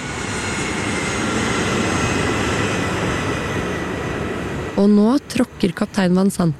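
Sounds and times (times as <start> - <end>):
airliner engines spooling up for takeoff: 0.0 - 4.8
speech: 4.8 - 6.5.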